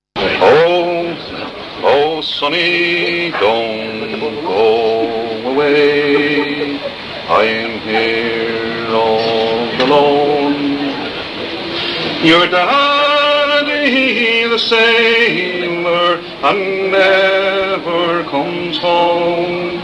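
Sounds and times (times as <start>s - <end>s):
laughter: 0.2s - 12.4s
folk song: 0.2s - 19.8s.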